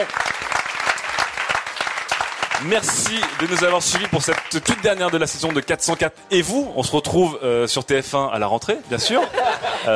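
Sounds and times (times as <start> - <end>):
speech: 0.0 - 0.3, 2.6 - 9.9
audience applause: 0.0 - 6.0
laughter: 8.9 - 9.9.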